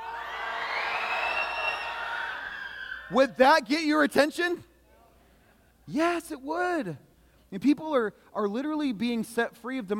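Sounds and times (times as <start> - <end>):
crowd shrieking and screaming: 0.0 - 3.1
speech: 3.1 - 4.7, 5.9 - 9.9.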